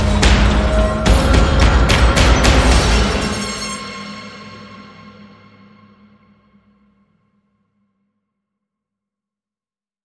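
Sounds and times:
horror music without melody: 0.0 - 7.4.

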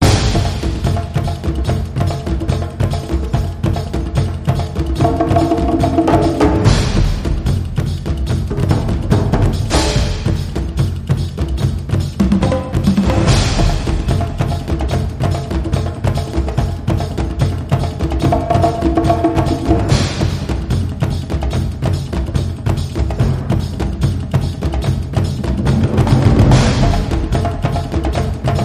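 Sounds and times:
epic drums: 0.0 - 28.6.

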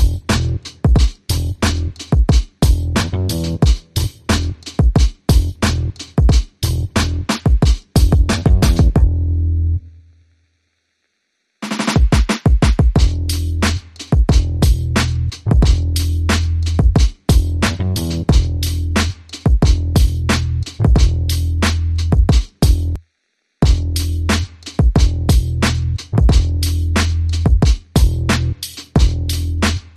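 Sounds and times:
bass: 0.0 - 2.0, 2.6 - 4.7, 5.3 - 6.0, 6.6 - 7.4, 8.0 - 10.0, 13.0 - 23.0, 23.6 - 29.9
drums: 0.0 - 9.2, 11.6 - 23.0, 23.6 - 29.9.

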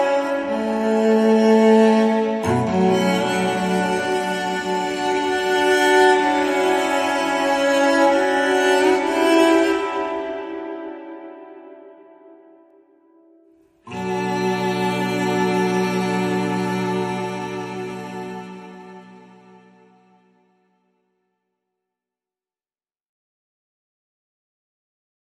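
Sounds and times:
solo cello playing: 0.0 - 11.6, 13.9 - 20.3.

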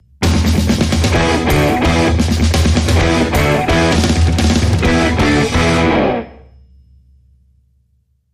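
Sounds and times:
heavy breaker: 1.0 - 6.4.

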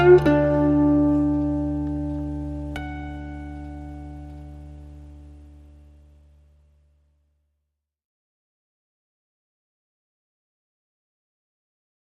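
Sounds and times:
mandolin blues: 0.0 - 5.3.

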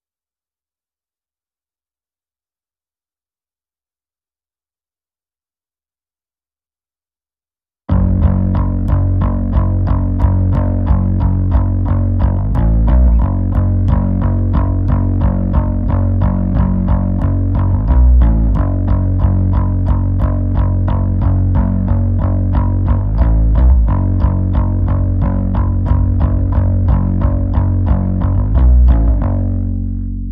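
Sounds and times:
bass: 7.9 - 30.3.

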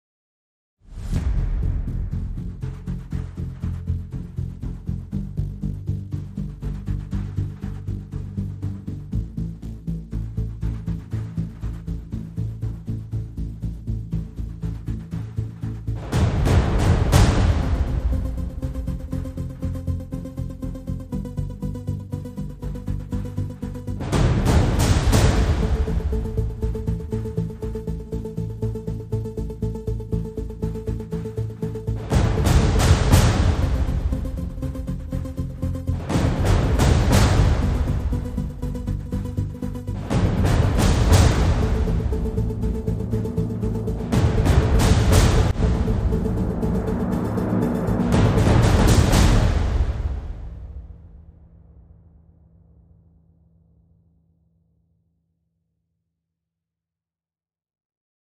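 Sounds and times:
drums: 0.9 - 20.2, 23.2 - 29.0, 30.0 - 51.4
synths: 1.0 - 50.8.

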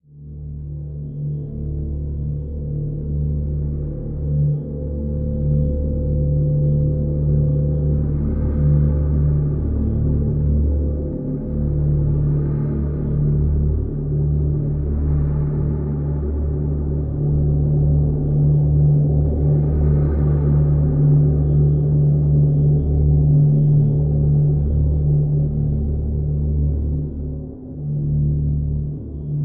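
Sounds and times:
deep drone in D: 0.0 - 29.4.

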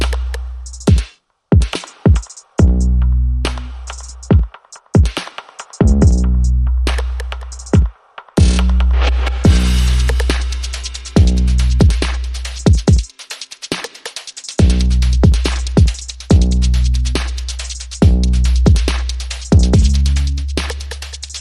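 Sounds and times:
bass: 0.0 - 0.9, 2.6 - 4.3, 5.8 - 7.8, 8.4 - 12.9, 14.6 - 21.3
drums: 0.0 - 21.3.

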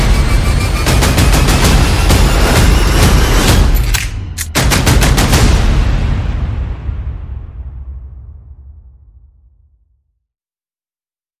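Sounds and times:
percussion: 0.0 - 5.9
sound effects: 0.0 - 8.5.

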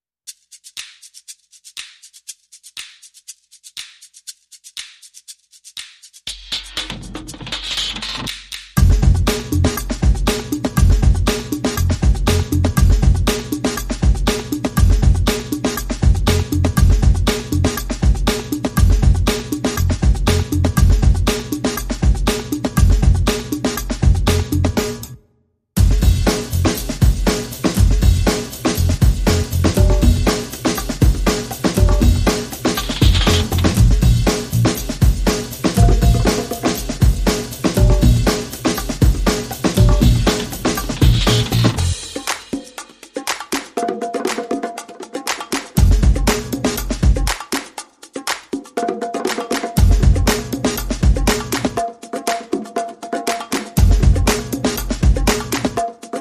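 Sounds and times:
drums: 6.3 - 25.2, 25.8 - 56.2
bass: 8.8 - 10.2, 10.8 - 13.4, 14.8 - 21.4, 22.0 - 25.1, 25.8 - 27.2, 27.8 - 30.4, 31.8 - 35.0, 35.8 - 36.4, 37.8 - 38.4, 39.8 - 42.1, 45.8 - 46.2, 49.8 - 50.4, 53.8 - 54.4.

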